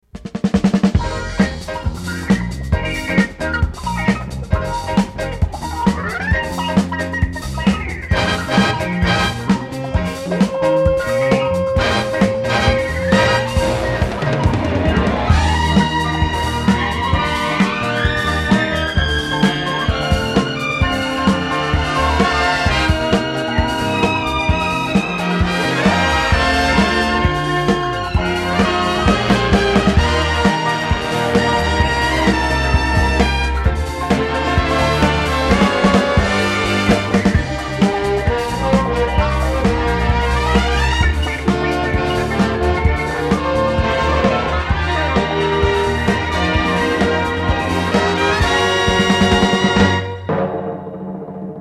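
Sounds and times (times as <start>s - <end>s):
disco stereo band track: 0.0s - 51.5s.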